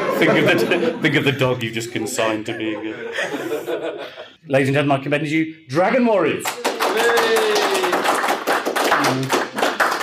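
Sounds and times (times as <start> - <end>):
laughter: 0.0 - 4.4
speech: 0.2 - 7.2, 9.1 - 9.4
slow hand clap: 6.4 - 10.0.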